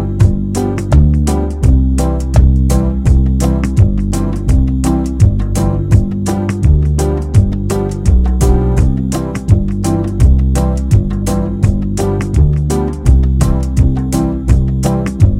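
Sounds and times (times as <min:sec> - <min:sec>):
banjo backing track in key of C: 0:00.0 - 0:15.3.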